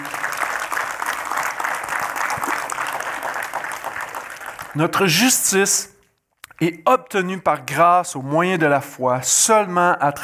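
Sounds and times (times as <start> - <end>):
audience applauding: 0.0 - 5.2
speech: 4.8 - 5.9, 6.6 - 10.2.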